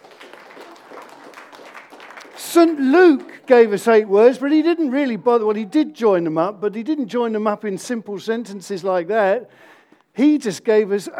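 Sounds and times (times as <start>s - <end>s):
audience applause: 0.0s - 4.2s
speech: 2.5s - 11.1s.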